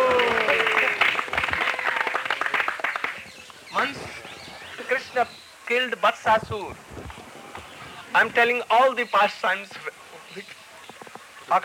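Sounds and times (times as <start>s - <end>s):
audience clapping: 0.0s - 3.7s
speech: 5.2s - 6.9s, 8.2s - 10.6s.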